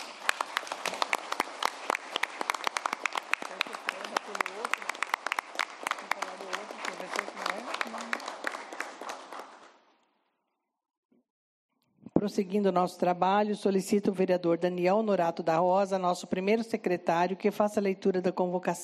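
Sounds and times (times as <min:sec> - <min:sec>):
group applause: 0:00.0 - 0:10.0
speech: 0:12.2 - 0:18.8.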